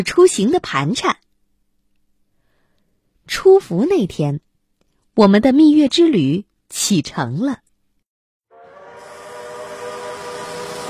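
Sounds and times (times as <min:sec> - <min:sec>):
speech: 0:00.0 - 0:01.2, 0:03.3 - 0:04.5, 0:05.2 - 0:07.6
green train whistle: 0:08.5 - 0:10.8.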